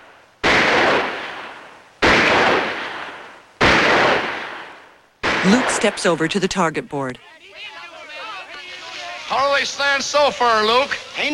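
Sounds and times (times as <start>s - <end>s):
rifle shots at a shooting contest: 0.4s - 6.2s
speech: 5.4s - 7.4s, 9.3s - 11.3s.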